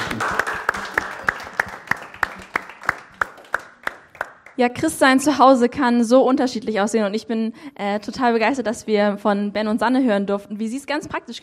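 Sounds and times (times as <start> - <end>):
audience applause: 0.0 - 4.6
sharp evenly spaced louder claps: 0.0 - 4.7
speech: 4.6 - 11.4.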